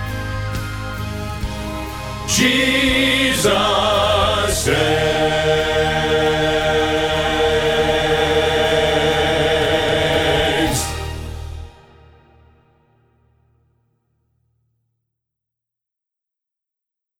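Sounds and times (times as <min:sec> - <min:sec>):
bass choir rehearsal part: 0:00.0 - 0:11.8.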